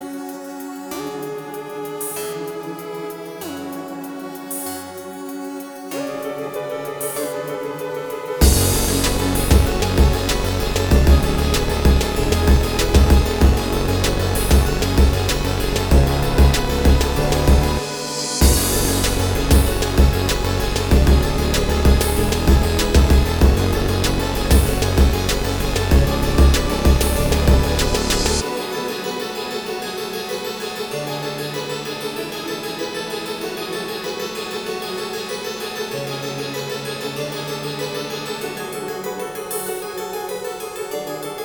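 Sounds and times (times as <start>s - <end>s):
rap loop: 8.4s - 28.8s.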